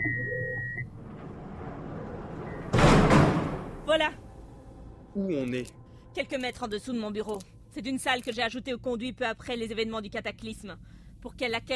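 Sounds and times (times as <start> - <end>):
steady electronic beep: 0.0 - 0.9
low rumbling hum: 0.0 - 11.7
door shutting: 0.8 - 4.0
speech: 3.9 - 4.2, 5.2 - 11.7.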